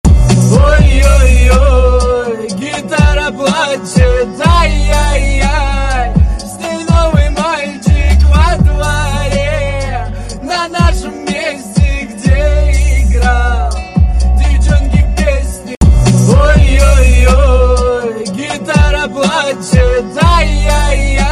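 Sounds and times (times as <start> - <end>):
guitar crying: 0.6 - 21.2.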